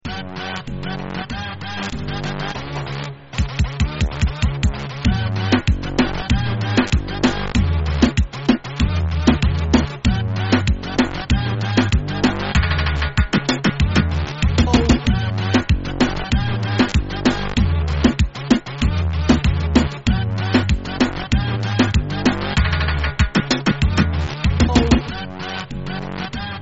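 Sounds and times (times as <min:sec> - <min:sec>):
reggaeton music: 0:00.0 - 0:26.5.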